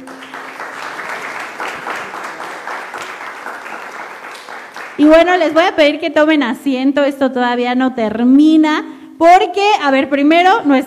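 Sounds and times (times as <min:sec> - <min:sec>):
audience applause: 0:00.0 - 0:05.1
speech: 0:05.0 - 0:10.8.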